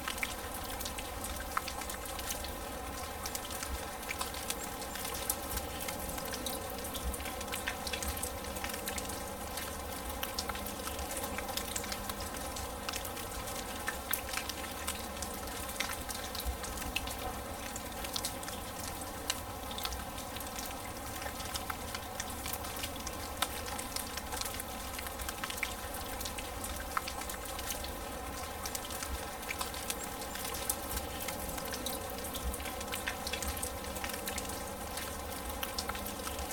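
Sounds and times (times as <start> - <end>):
smooth rain on grass: 0.0 - 36.5.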